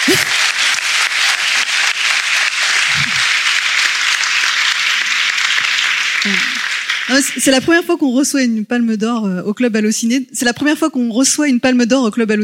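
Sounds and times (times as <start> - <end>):
audience applause: 0.0 - 7.7
speech: 6.2 - 6.5, 7.1 - 12.4.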